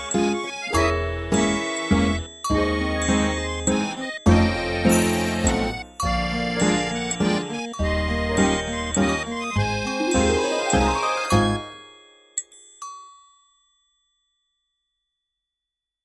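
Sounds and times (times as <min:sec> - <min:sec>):
waltz in 3/4 time: 0:00.0 - 0:11.8.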